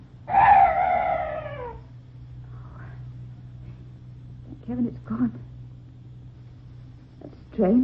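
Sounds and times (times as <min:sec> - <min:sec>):
strange night bird cry: 0:00.3 - 0:01.9
speech: 0:04.7 - 0:05.5, 0:07.6 - 0:07.8.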